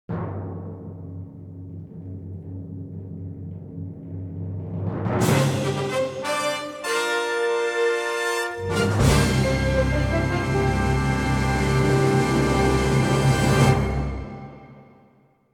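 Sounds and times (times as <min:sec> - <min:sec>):
fanfare: 0:05.2 - 0:14.8.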